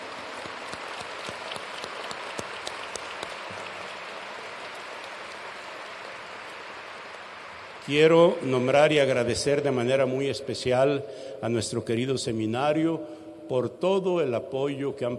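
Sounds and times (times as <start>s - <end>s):
applause: 0.0s - 8.6s
speech: 7.9s - 15.1s.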